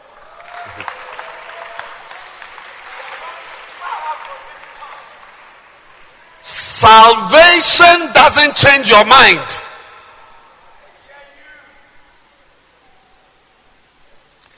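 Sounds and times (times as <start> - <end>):
audience clapping hands: 0.0 - 6.4
speech: 6.4 - 9.6.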